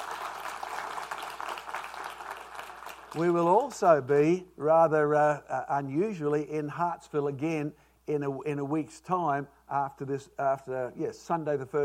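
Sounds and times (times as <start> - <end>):
audience applause: 0.0 - 3.8
speech: 3.1 - 11.8.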